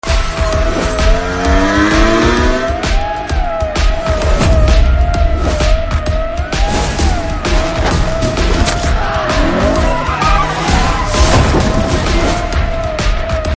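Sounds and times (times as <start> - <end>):
trailer background music ringtone: 0.0 - 13.5.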